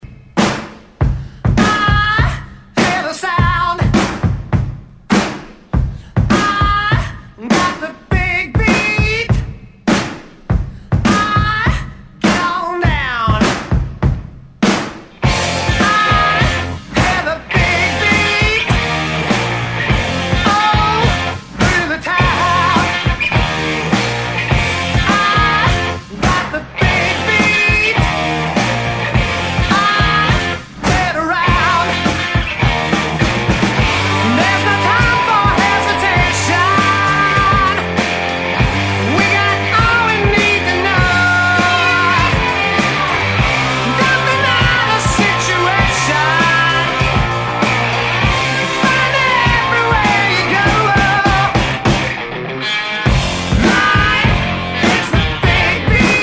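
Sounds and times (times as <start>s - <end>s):
rock music at 101 bpm: 0.0s - 56.2s.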